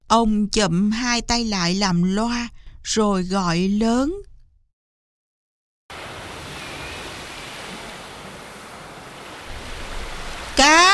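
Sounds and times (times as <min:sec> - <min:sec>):
speech: 0:00.1 - 0:04.3
gently rippling sea waves washing against the shore: 0:05.9 - 0:10.9.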